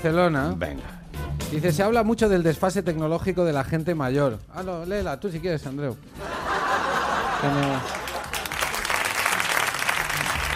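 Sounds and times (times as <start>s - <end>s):
speech: 0.0s - 6.3s, 7.4s - 8.0s
laughter: 6.2s - 8.8s
audience applause: 7.2s - 10.5s.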